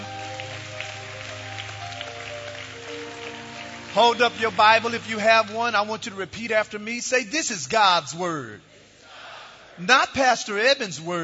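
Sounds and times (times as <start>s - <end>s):
audience clapping hands: 0.0s - 6.3s
speech: 3.9s - 8.7s, 9.8s - 11.2s.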